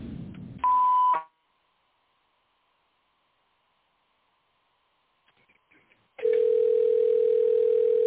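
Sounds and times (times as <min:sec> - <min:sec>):
phone menu beep tone: 0:00.6 - 0:01.2, 0:06.2 - 0:08.0.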